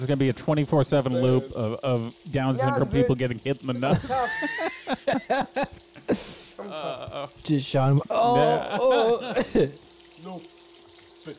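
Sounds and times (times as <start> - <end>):
speech: 0.0 - 10.5
burgers frying in a pan: 0.0 - 11.3
laughter: 3.9 - 6.5, 8.1 - 9.8.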